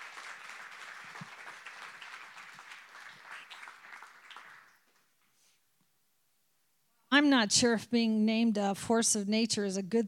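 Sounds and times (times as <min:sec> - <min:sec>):
crowd applause: 0:00.0 - 0:05.0
speech: 0:07.2 - 0:10.0.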